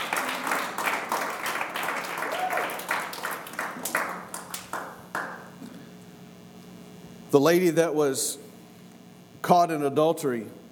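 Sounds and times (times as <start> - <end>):
audience clapping: 0.0 - 5.5
speech: 7.3 - 8.4, 9.4 - 10.6.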